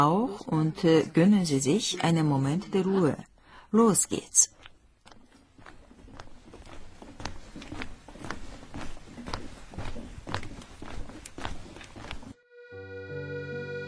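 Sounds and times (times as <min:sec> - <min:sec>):
speech: 0:00.0 - 0:04.6
footsteps of person walking: 0:04.4 - 0:12.4.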